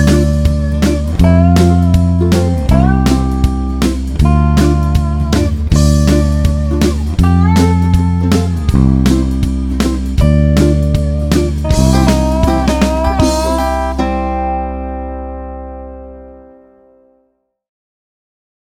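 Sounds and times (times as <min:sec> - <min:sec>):
full band playing root notes: 0:00.0 - 0:14.6.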